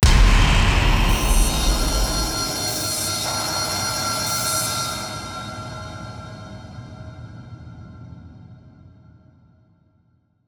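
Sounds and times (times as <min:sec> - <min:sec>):
rising tension build: 0:00.0 - 0:03.4
impact hit: 0:00.0 - 0:04.8.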